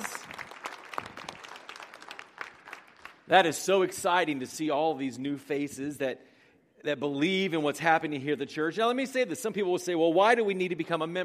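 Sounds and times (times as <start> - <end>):
audience applause: 0.0 - 3.3
speech: 3.3 - 11.2.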